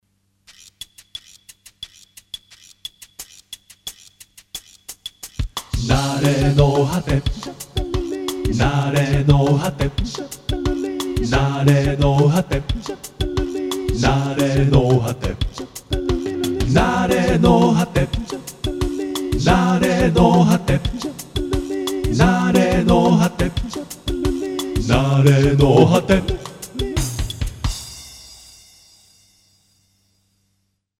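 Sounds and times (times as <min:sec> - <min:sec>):
bossa nova jingle: 0:05.9 - 0:30.4.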